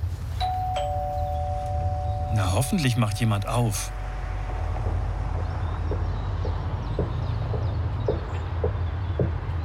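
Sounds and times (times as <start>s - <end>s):
low rumble: 0.0s - 9.5s
doorbell chiming: 0.4s - 5.5s
speech: 2.3s - 4.0s.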